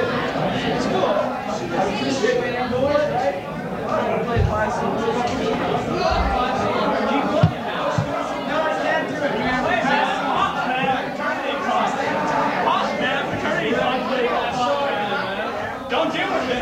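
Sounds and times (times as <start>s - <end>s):
crowd noise after a set: 0.0s - 16.5s.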